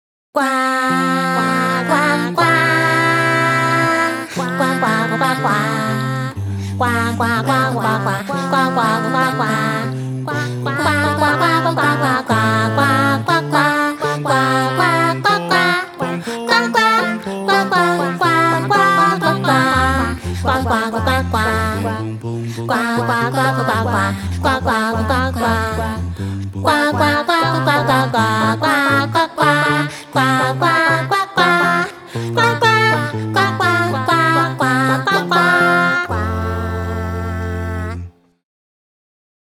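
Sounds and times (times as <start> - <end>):
vocal ensemble singing: 0.4 - 38.2.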